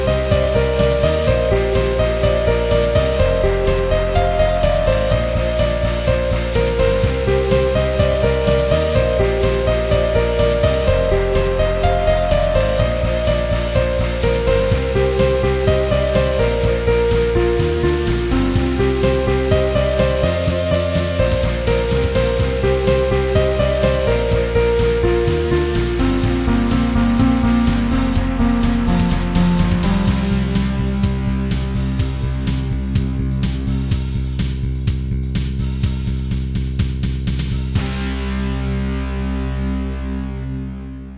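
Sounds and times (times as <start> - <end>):
piano: 0.0 - 41.1
guitar: 37.8 - 41.1.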